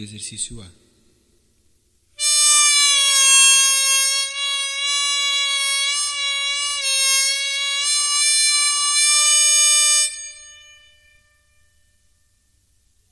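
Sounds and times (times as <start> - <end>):
gaita de boca bagpipe bends: 2.2 - 12.2.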